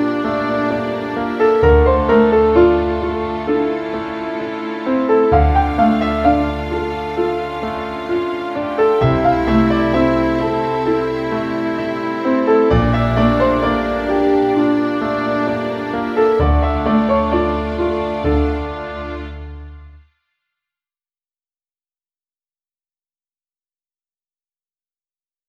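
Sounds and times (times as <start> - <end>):
romantic music: 0.0 - 20.0.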